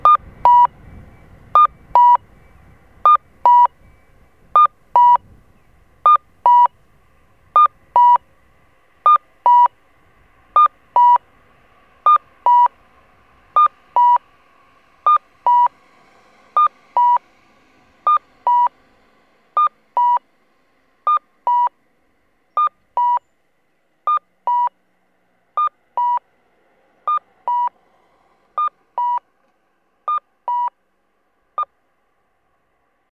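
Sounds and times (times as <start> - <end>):
Kyosan LTA-BMS-2 audible crossing signal cuckoo chirps in Saidaijikami, Okayama: 0.0 - 6.9, 7.5 - 8.2, 9.0 - 9.8, 10.6 - 11.2, 12.0 - 12.8, 13.6 - 14.3, 15.0 - 15.7, 16.6 - 17.2, 18.1 - 18.8, 19.6 - 20.2, 21.1 - 21.8, 22.5 - 23.3, 24.1 - 24.8, 25.6 - 26.2, 27.1 - 27.7, 28.6 - 29.2, 30.1 - 30.8.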